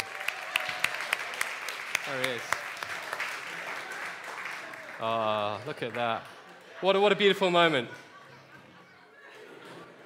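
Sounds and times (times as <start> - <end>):
round of applause: 0.0 - 6.8
speech: 2.1 - 2.6, 5.0 - 8.0.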